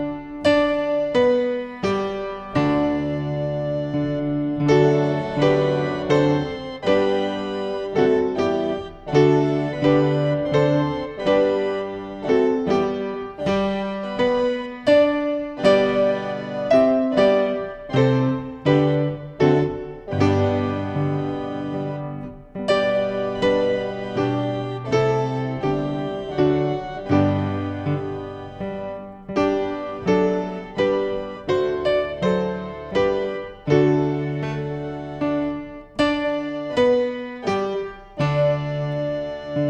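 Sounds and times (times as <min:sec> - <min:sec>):
organ: 0:00.0 - 0:39.6
piano: 0:00.0 - 0:39.6.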